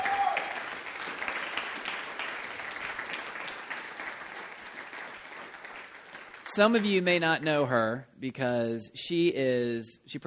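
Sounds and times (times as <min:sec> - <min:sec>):
crowd applauding: 0:00.0 - 0:07.1
speech: 0:06.6 - 0:10.2.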